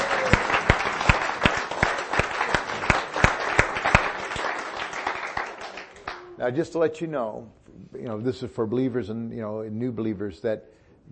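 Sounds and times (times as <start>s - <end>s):
audience applause: 0.0s - 6.2s
speech: 6.4s - 11.1s.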